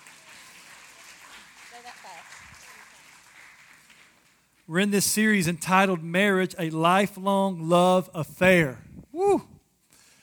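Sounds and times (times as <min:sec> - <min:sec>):
audience applauding: 0:00.0 - 0:04.5
speech: 0:04.7 - 0:09.5.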